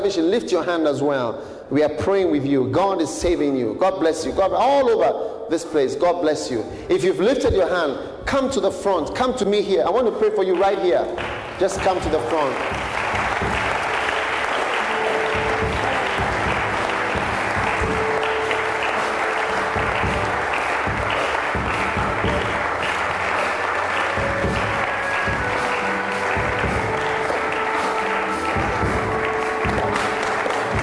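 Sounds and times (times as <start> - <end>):
speech: 0.0 - 12.9
large crowd clapping: 10.5 - 30.8.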